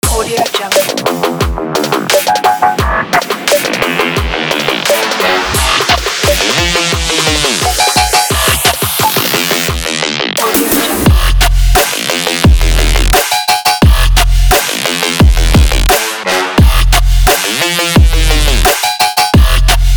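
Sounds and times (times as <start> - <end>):
sport dubstep music: 0.0 - 19.9.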